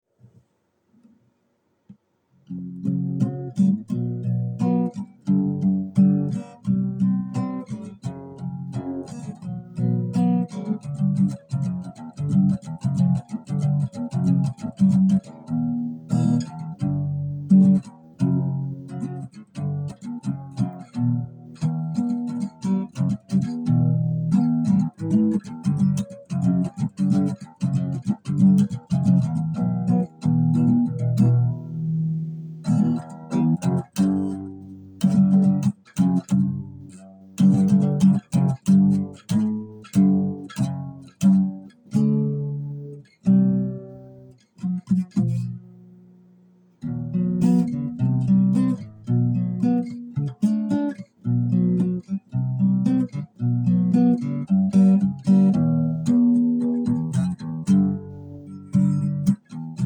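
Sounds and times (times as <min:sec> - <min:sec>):
guitar: 0:01.9 - 0:59.8.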